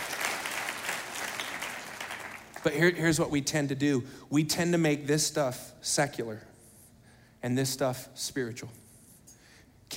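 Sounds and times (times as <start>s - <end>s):
audience clapping: 0.0s - 3.0s
speech: 2.6s - 6.5s, 7.4s - 8.8s.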